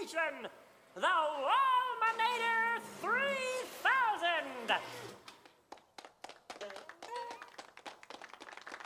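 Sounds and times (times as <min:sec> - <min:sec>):
speech: 0:00.1 - 0:05.3
crowd clapping: 0:05.4 - 0:08.8.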